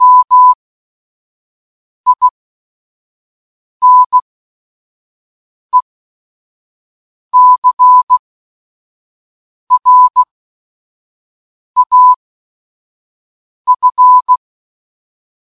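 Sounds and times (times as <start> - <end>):
morse code beeps: 0.0 - 0.6, 2.1 - 2.4, 3.8 - 4.2, 7.4 - 8.2, 9.7 - 10.3, 11.8 - 12.2, 13.7 - 14.4.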